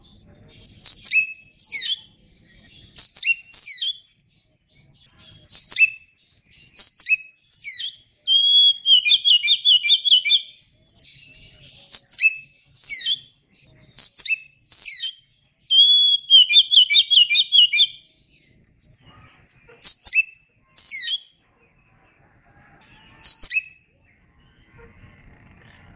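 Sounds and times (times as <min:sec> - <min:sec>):
Oriental magpie-robin whistling and warbling: 0:00.0 - 0:04.2, 0:05.2 - 0:18.1, 0:19.0 - 0:21.4, 0:23.0 - 0:23.9.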